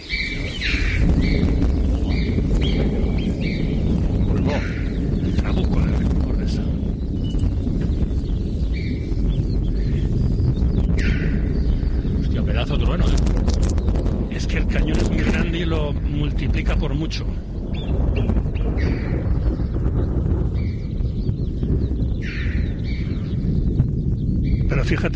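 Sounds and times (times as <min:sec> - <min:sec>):
marmots calling: 0:00.0 - 0:05.6, 0:07.0 - 0:12.2, 0:22.1 - 0:23.4
alpine choughs calling: 0:00.0 - 0:25.1
distant thunder rumbling: 0:00.0 - 0:25.1.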